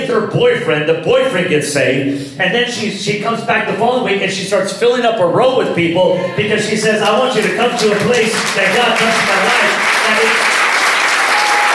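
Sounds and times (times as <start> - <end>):
speech: 0.0 - 10.6
audience clapping: 7.0 - 11.7.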